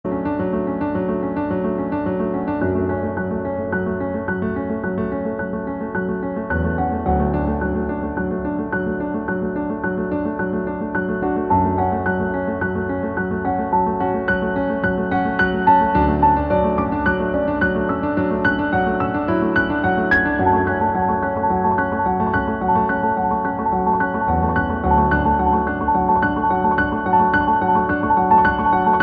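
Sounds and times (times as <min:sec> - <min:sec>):
piano: 0:00.0 - 0:29.0.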